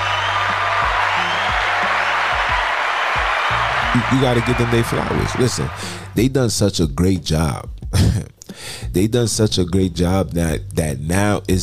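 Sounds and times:
audience applause: 0.0s - 6.1s
speech: 4.0s - 11.6s.

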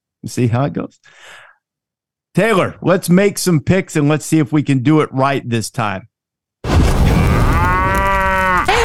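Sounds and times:
speech: 0.2s - 1.4s, 2.4s - 6.1s
cow mooing: 7.5s - 8.7s.

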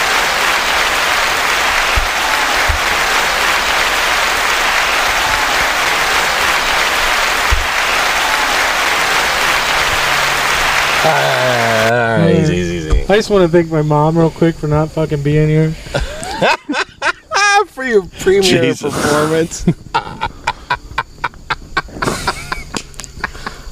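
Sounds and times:
audience applause at an outdoor wedding: 0.0s - 12.4s, 16.1s - 17.6s
laughter: 0.0s - 12.7s, 15.9s - 23.6s
speech: 13.1s - 16.6s, 17.8s - 19.8s.

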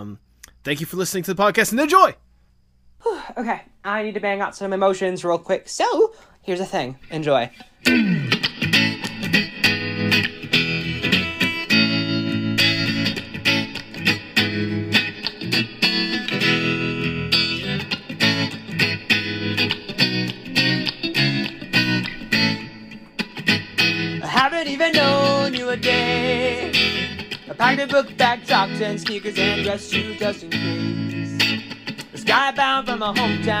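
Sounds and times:
speech: 0.0s - 2.2s, 3.0s - 8.4s, 27.6s - 31.0s, 32.3s - 33.5s
guitar being played: 7.0s - 33.5s.

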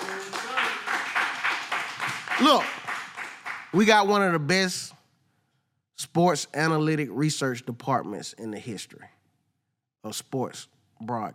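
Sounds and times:
audience clapping: 0.0s - 4.2s
speech: 2.4s - 2.8s, 3.7s - 4.8s, 6.0s - 9.2s, 10.0s - 11.3s.

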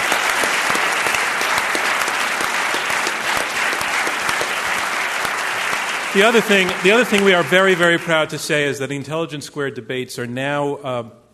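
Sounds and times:
audience applause: 0.0s - 8.7s
speech: 6.2s - 11.2s.

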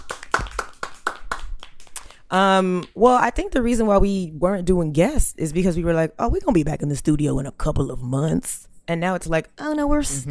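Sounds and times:
few people clapping: 0.0s - 2.2s
speech: 2.3s - 10.3s.

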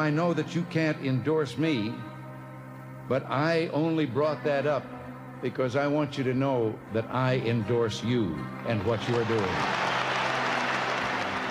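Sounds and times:
speech: 0.0s - 2.1s, 3.1s - 9.9s
crowd applauding and cheering: 8.8s - 11.4s.

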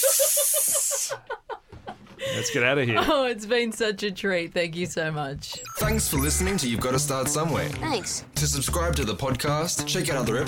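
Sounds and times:
water poured on hot sauna stones hissing: 0.0s - 1.1s
speech: 2.4s - 10.4s.

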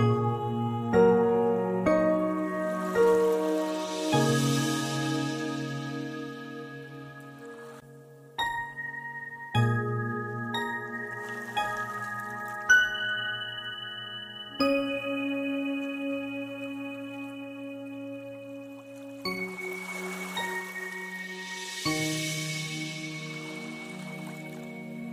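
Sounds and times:
meditation music of ringing bell-like tones: 0.0s - 25.1s
soft washes of water sound: 2.6s - 5.8s, 18.7s - 25.1s.

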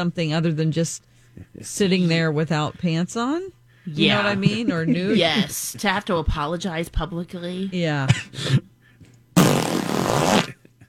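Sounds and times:
speech: 0.0s - 8.7s
zipper being zipped: 9.4s - 10.5s.

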